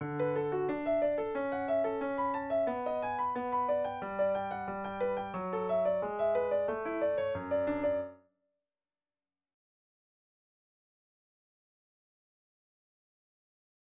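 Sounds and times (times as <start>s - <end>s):
piano sketches: 0.0s - 8.2s.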